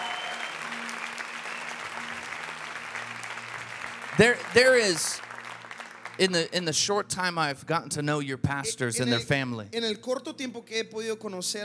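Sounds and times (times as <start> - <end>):
loud audience applause: 0.0 - 6.8
speech: 4.2 - 5.3, 6.2 - 11.6.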